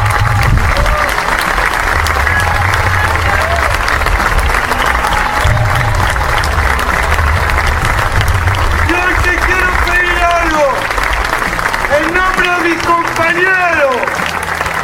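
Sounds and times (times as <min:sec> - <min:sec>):
audience applause: 0:00.0 - 0:14.8.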